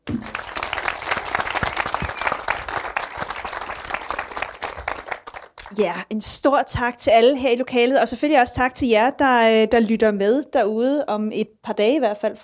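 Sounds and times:
audience applause: 0.0s - 5.8s
speech: 5.8s - 12.4s.

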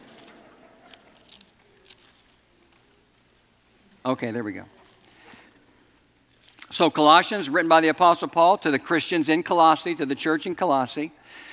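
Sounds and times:
many Bible pages being turned: 0.0s - 4.0s
speech: 4.0s - 4.8s, 6.8s - 11.5s.

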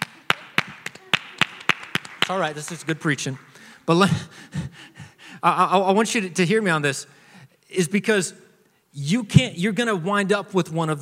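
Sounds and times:
one person clapping hands: 0.0s - 3.6s
speech: 2.3s - 8.4s, 9.0s - 11.0s.

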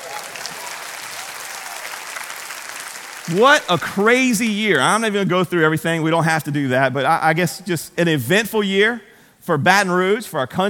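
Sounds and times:
crowd applauding: 0.0s - 4.5s
speech: 3.3s - 10.6s.

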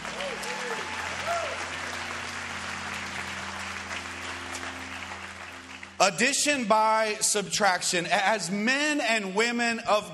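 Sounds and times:
audience applause: 0.0s - 6.0s
brief voiced whoops: 0.1s - 1.7s
speech: 6.0s - 10.1s.

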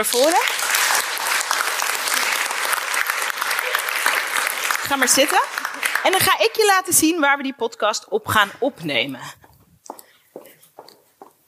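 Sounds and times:
speech: 0.0s - 0.6s, 4.9s - 9.4s
audience applause: 0.0s - 6.6s.

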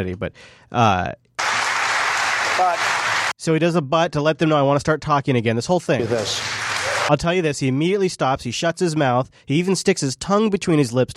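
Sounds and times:
speech: 0.0s - 1.2s, 2.6s - 11.1s
audience applause: 1.4s - 3.4s, 6.0s - 7.1s.

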